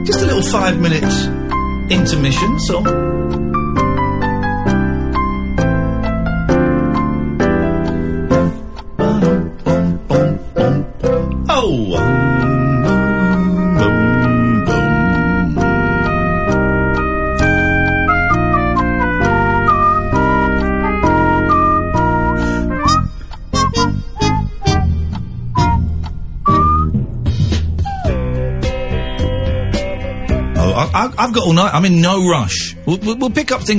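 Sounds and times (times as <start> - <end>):
speech: 0.0 - 3.6, 31.4 - 33.7
waiting music: 0.0 - 33.7.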